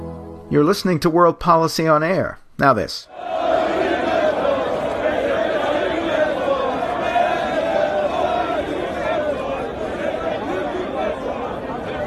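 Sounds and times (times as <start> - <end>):
speech: 0.5 - 3.2
supporters of Recep Tayyip Erdoğan cheering in the streets of Ankara: 3.1 - 12.0.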